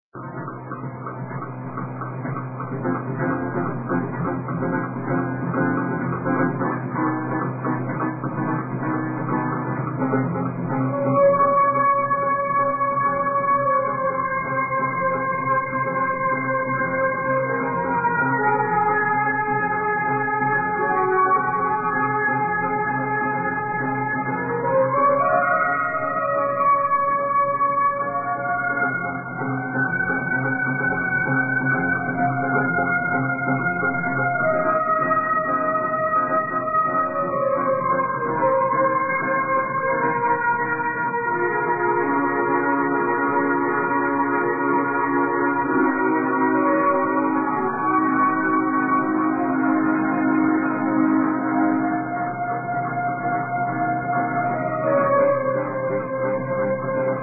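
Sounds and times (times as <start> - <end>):
keyboard: 0.1 - 57.2.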